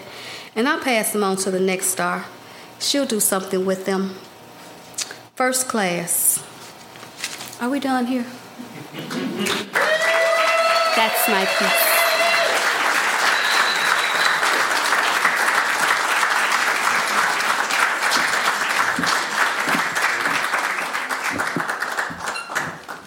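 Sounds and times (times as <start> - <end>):
speech: 0.6 - 4.3, 5.4 - 6.2, 7.6 - 9.7, 11.0 - 11.9
audience applause: 9.1 - 23.0.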